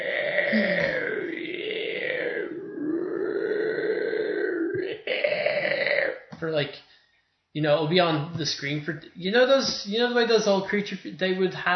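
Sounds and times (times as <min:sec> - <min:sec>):
human voice imitating the giant scorpion's noise from the film Black Scorpion: 0:00.0 - 0:06.3
speech: 0:00.5 - 0:00.8, 0:07.6 - 0:11.7.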